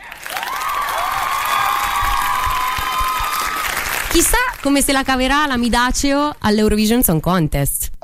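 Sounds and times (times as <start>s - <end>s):
applause: 0.0s - 4.9s
speech: 4.2s - 7.9s.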